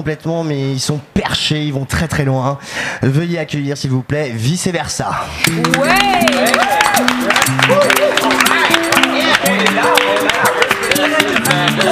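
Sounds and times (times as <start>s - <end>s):
speech: 0.0s - 8.5s, 9.4s - 10.6s, 11.2s - 11.9s
crowd clapping: 5.4s - 11.9s.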